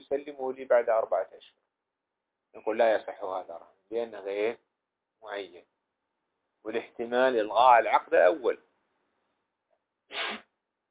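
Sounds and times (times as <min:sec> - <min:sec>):
speech: 0:00.1 - 0:01.6, 0:02.5 - 0:05.7, 0:06.6 - 0:08.7
sneeze: 0:10.1 - 0:10.5.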